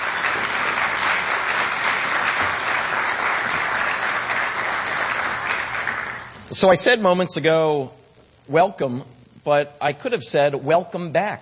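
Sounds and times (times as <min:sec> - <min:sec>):
audience round of applause: 0:00.0 - 0:06.4
speech: 0:06.6 - 0:11.3.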